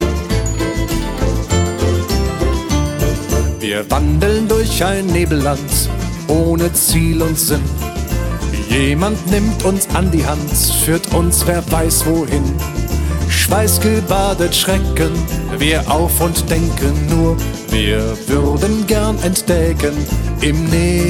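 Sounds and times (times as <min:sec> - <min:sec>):
lied art song: 0:00.0 - 0:21.0.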